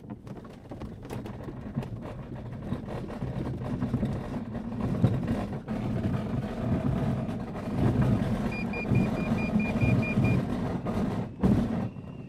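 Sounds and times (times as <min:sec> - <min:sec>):
tow plane engine during glider aerotow takeoff: 0:02.9 - 0:12.2.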